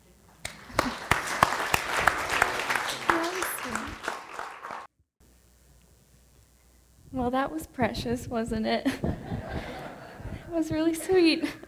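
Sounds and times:
church audience applause welcoming a speaker: 0.4s - 4.9s
speech: 7.2s - 9.4s, 10.5s - 11.6s
laughter: 8.9s - 10.6s.

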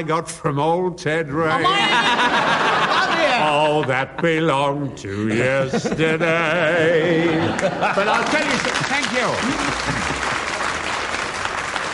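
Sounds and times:
speech: 0.0s - 10.1s
laughter: 1.5s - 4.6s, 5.2s - 10.8s
audience applause at a variety comedy show: 7.5s - 11.9s.

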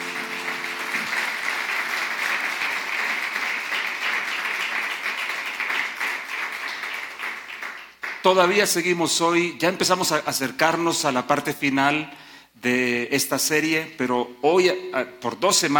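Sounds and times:
audience applause: 0.0s - 8.2s
speech: 8.2s - 15.7s.

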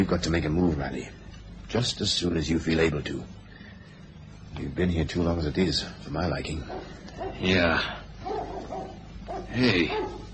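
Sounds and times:
speech: 0.0s - 3.4s, 4.6s - 8.0s, 9.5s - 10.3s
hound barking in the distance: 6.6s - 10.3s.

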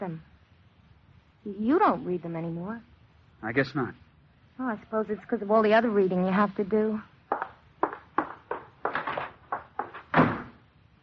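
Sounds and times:
speech: 0.0s - 0.3s, 1.4s - 4.0s, 4.6s - 7.4s
hurried footsteps: 7.3s - 10.5s
door closing: 7.8s - 10.7s.

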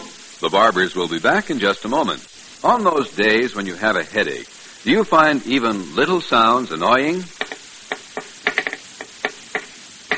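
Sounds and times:
speech: 0.6s - 7.4s
pencil tapping on a desk: 7.4s - 10.1s.

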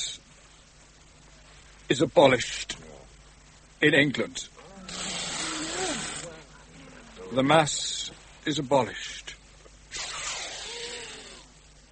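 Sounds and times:
speech: 1.9s - 2.8s, 3.8s - 4.6s, 7.3s - 9.2s
water hissing on hot brazier: 4.9s - 6.4s.

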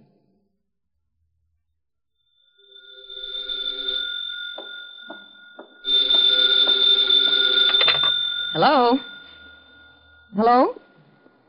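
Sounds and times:
telephone bell ringing: 2.4s - 10.5s
speech: 8.6s - 9.1s, 10.3s - 10.8s.

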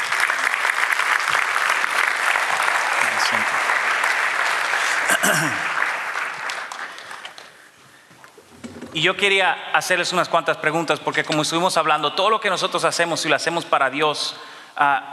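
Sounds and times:
audience applause: 0.0s - 7.7s
speech: 5.3s - 5.7s, 9.0s - 15.1s.

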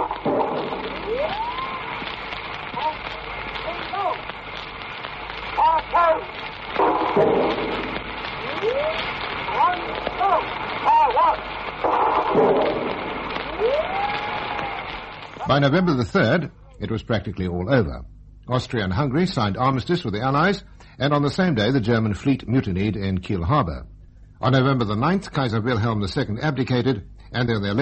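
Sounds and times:
heavier gas shell bursts: 0.0s - 13.6s
whistling gas shells fired by the British Royal Garrison Artillery near Lille: 0.0s - 15.4s
dense crackling noise of a gas shell barrage: 0.0s - 27.7s
speech: 15.5s - 27.7s.

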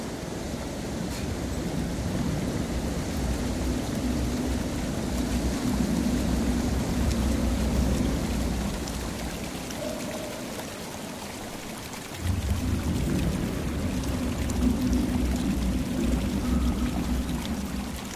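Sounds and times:
river water flowing: 0.0s - 18.1s.

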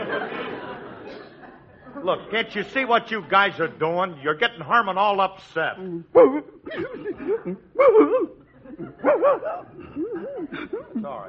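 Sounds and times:
laughter: 0.0s - 3.8s, 6.8s - 11.2s
speech: 2.0s - 11.2s
St. Bernard barking and yowling: 9.0s - 9.7s.

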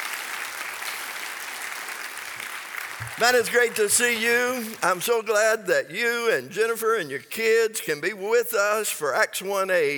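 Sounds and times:
audience applause: 0.0s - 4.8s
speech: 3.0s - 9.9s.

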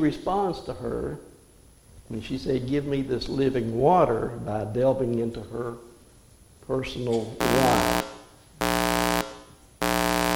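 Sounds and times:
speech: 0.0s - 1.3s, 2.1s - 5.9s, 6.7s - 8.0s
wrong-answer buzzer: 7.4s - 10.3s.

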